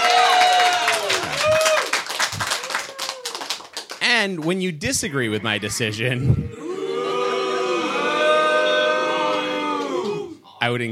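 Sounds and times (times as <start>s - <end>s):
audience cheering: 0.0s - 3.7s, 6.6s - 10.4s
speech: 4.2s - 6.5s, 10.6s - 10.9s.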